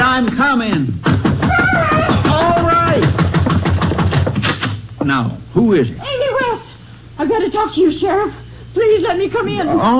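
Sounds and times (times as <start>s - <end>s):
urgent knocking on a house door: 0.3s - 5.2s
speech: 5.1s - 6.3s, 7.2s - 9.9s.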